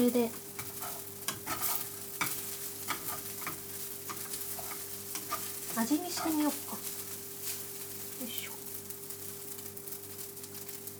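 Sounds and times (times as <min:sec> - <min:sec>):
speech: 0:00.0 - 0:00.4, 0:05.8 - 0:06.9
faint sizzle of rice with butter in a pan: 0:00.0 - 0:10.9
rice with butter being stirred in a pan, scraping strokes: 0:00.3 - 0:07.8.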